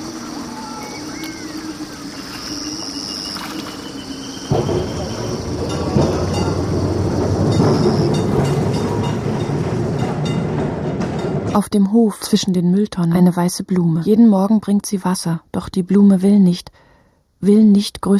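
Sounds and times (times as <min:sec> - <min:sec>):
high metallic whine of tram: 0:00.0 - 0:10.5
tram wheel clatter: 0:00.0 - 0:11.7
tram rumbling along its rails: 0:00.0 - 0:13.4
speech: 0:11.6 - 0:16.8, 0:17.4 - 0:18.1.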